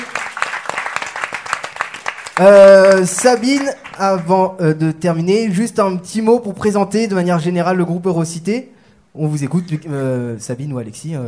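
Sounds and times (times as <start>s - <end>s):
audience applause: 0.0s - 4.3s
speech: 2.4s - 11.2s.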